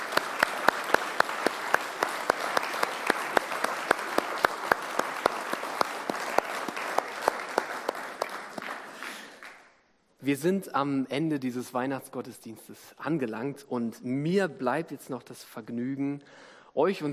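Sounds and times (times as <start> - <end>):
audience applause: 0.0 - 9.7
speech: 10.3 - 17.1.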